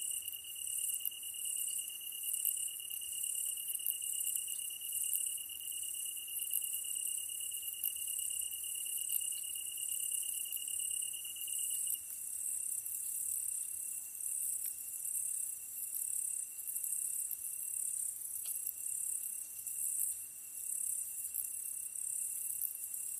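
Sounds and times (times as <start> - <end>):
tree cricket singing: 0.0 - 23.1.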